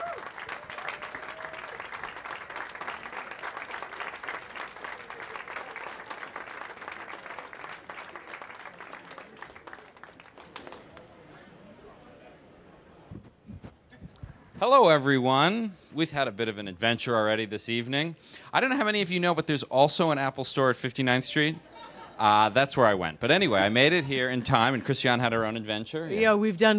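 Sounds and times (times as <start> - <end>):
audience applause welcoming speakers at a live evening event: 0.0 - 11.1
speech: 14.6 - 26.7.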